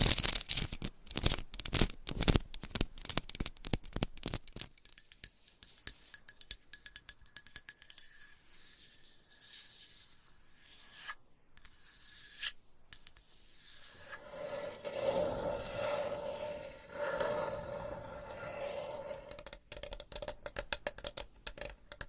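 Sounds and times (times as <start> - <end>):
scratching and tapping: 0.0 - 8.0, 14.1 - 22.0.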